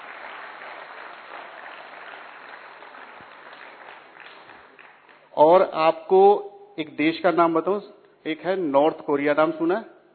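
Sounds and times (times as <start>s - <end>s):
audience applause: 0.0s - 5.2s
speech: 5.4s - 9.9s.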